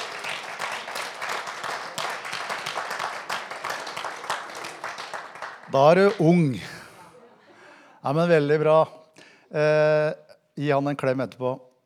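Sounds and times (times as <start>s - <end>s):
audience applause: 0.0s - 7.1s
speech: 5.7s - 6.7s, 8.0s - 11.7s
laughter: 6.3s - 8.2s.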